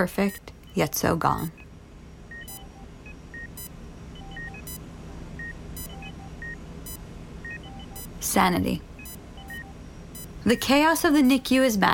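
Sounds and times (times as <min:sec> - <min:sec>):
speech: 0:00.0 - 0:01.6, 0:08.4 - 0:08.9, 0:10.4 - 0:11.9
glucose monitor beeping: 0:00.0 - 0:11.9
low mechanical hum: 0:00.0 - 0:11.9
soft electronic tones: 0:02.3 - 0:04.8, 0:05.4 - 0:08.4, 0:09.0 - 0:11.6.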